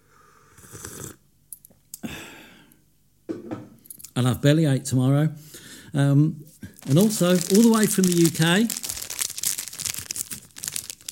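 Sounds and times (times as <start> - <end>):
speech: 4.2 - 8.8
crinkly plastic packet of Foxy's Crunch Creams biscuits being opened: 6.7 - 11.1.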